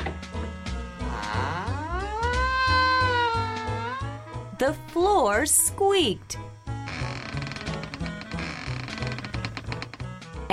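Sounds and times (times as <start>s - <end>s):
door creaking: 0.0s - 4.7s, 6.8s - 10.1s
speech: 4.6s - 6.4s.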